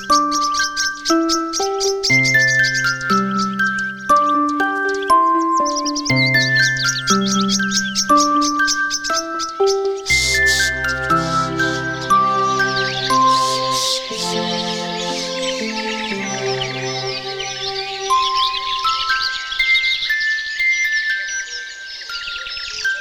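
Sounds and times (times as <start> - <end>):
bird chirps and twitters: 0.0 - 22.9.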